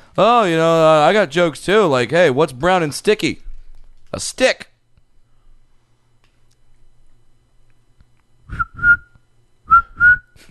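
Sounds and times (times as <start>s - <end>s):
speech: 0.2s - 3.4s, 4.1s - 4.7s
person whistling a cricket-like chirp: 8.4s - 10.4s.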